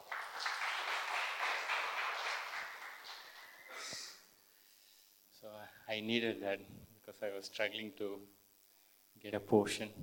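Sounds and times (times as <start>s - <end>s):
audience clapping: 0.0s - 3.8s
speech: 5.9s - 8.4s, 9.2s - 10.0s.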